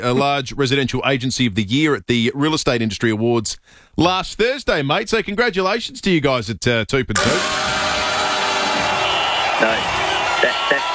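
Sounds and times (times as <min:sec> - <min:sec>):
speech: 0:00.0 - 0:07.8, 0:09.6 - 0:10.8
applause: 0:08.0 - 0:10.9.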